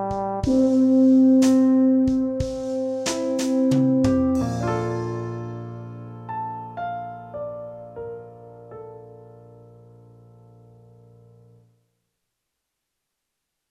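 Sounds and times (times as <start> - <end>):
brass practice pitch matching: 0.0 - 6.0.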